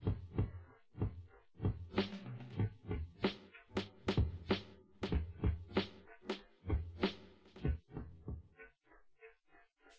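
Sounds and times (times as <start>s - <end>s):
drums: 0.0s - 8.5s.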